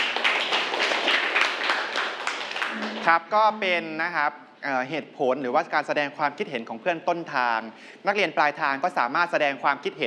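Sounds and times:
classroom students clapping for a classmate: 0:00.0 - 0:03.2
speech: 0:03.0 - 0:10.0.

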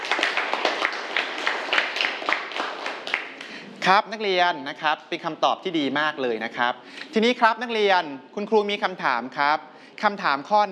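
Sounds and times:
classroom clapping for a classmate: 0:00.0 - 0:03.7
speech: 0:03.9 - 0:10.7.

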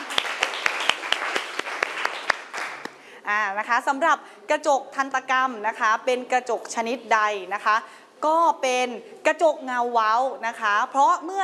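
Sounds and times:
classroom applause: 0:00.0 - 0:03.0
speech: 0:03.3 - 0:11.4.

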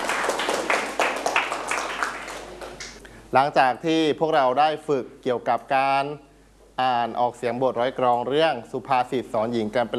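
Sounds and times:
classroom clapping: 0:00.0 - 0:03.0
speech: 0:03.3 - 0:09.9.

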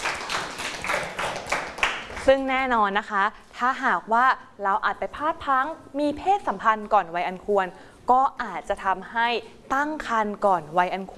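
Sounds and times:
classmates clapping for a student in a classroom: 0:00.0 - 0:02.4
speech: 0:02.3 - 0:11.1.

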